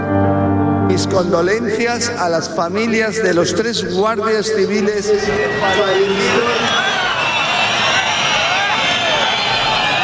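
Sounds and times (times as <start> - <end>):
speech: 0.9 - 7.0
crowd booing: 4.8 - 10.0
shrill whistles: 5.4 - 10.0.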